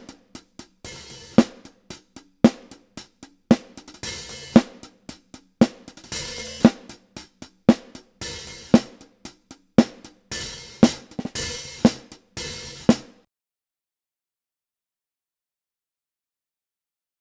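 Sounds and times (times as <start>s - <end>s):
hi-hat: 0.0s - 13.2s.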